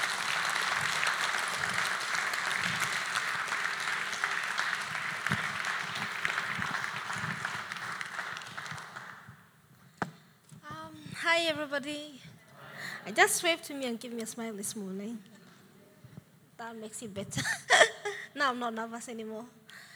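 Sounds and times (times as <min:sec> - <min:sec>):
audience applause: 0:00.0 - 0:09.4
speech: 0:11.4 - 0:12.3, 0:13.0 - 0:15.3, 0:16.6 - 0:17.6, 0:18.4 - 0:19.6.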